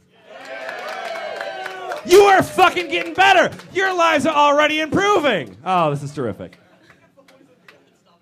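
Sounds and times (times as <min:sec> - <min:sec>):
live audience applause: 0:00.3 - 0:06.0
speech: 0:02.0 - 0:06.6
laughter: 0:06.5 - 0:08.2.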